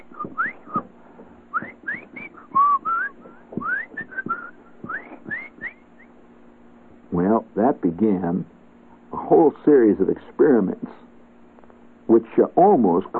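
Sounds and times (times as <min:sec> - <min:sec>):
voice whistling chirpy Morse code: 0:00.0 - 0:00.9, 0:01.5 - 0:06.1
speech: 0:08.0 - 0:08.6, 0:09.3 - 0:11.1, 0:12.1 - 0:13.1.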